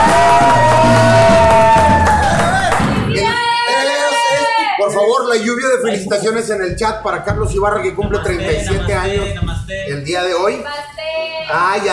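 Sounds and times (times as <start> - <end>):
crowd cheering and applause: 0.0 - 4.7
speech: 5.4 - 10.9, 11.5 - 11.9.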